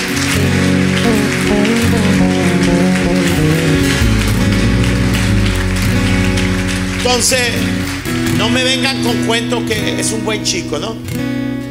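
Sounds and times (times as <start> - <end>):
audience applause: 0.0 - 9.2
sustained musical tones: 1.0 - 9.4
speech: 7.1 - 7.7, 8.4 - 11.3.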